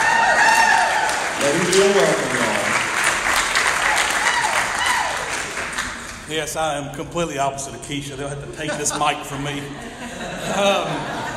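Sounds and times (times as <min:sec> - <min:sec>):
audience applause for a speaker being welcomed: 0:00.0 - 0:06.3
speech: 0:01.6 - 0:02.4, 0:06.3 - 0:11.3
laughter: 0:08.2 - 0:11.3.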